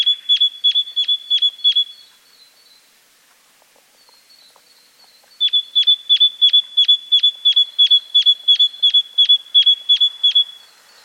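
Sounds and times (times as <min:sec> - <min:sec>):
great tit calling sharp metallic notes: 0:00.0 - 0:02.1, 0:05.1 - 0:11.0.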